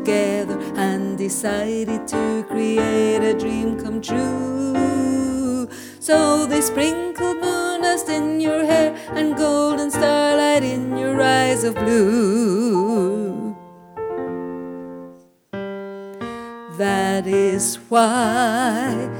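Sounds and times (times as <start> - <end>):
alto voice singing: 0.0 - 13.8, 16.7 - 19.1.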